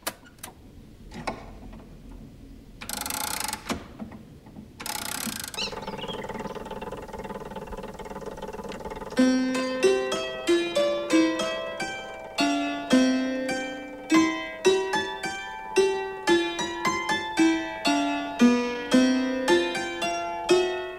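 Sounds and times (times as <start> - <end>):
low mechanical noise: 0.0 - 20.9
Marie Antoinette's dulcimer automaton playing a piece: 4.8 - 20.9.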